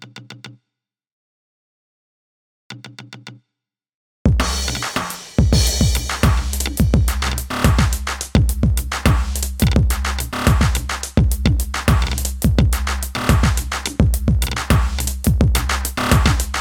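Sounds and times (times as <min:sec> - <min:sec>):
drums and percussion: 0:04.3 - 0:16.5.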